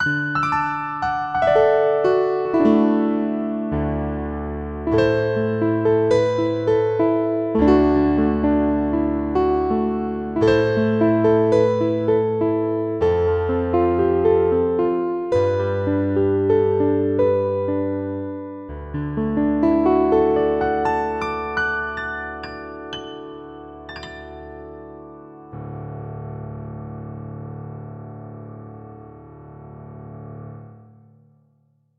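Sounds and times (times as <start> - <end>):
piano: 0.0 - 31.9.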